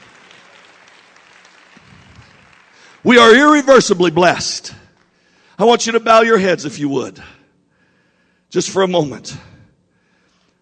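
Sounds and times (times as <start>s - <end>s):
audience clapping: 0.0s - 4.1s, 4.7s - 5.4s
speech: 3.0s - 4.8s, 5.6s - 7.4s, 8.5s - 9.5s.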